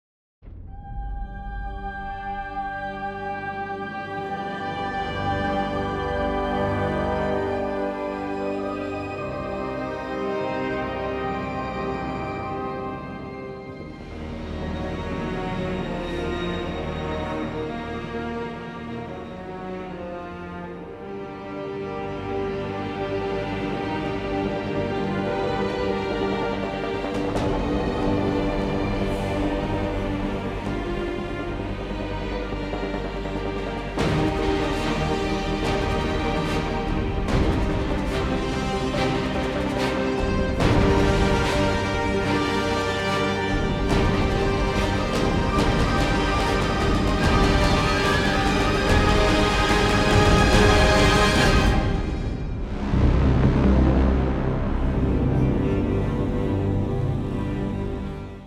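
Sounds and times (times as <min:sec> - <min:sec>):
trailer music: 0:00.4 - 0:58.4.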